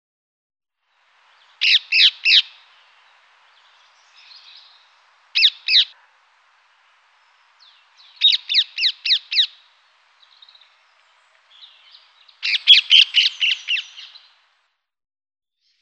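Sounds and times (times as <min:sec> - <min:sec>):
rose-ringed parakeet squawking and screeching: 0:01.6 - 0:02.6, 0:04.3 - 0:06.1, 0:08.0 - 0:09.7, 0:12.4 - 0:14.1.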